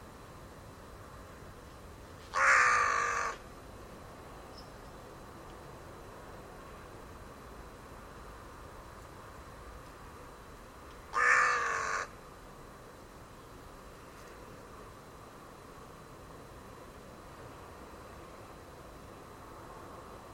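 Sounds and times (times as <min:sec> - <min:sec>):
faint background hiss: 0:00.0 - 0:20.3
rasping bird call: 0:02.3 - 0:03.4, 0:11.1 - 0:12.2.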